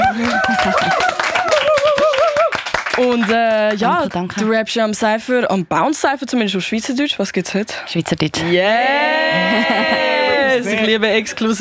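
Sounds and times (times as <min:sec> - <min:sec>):
laughter: 0:00.0 - 0:02.5, 0:08.8 - 0:11.0
applause: 0:00.0 - 0:04.5
speech: 0:03.0 - 0:11.6.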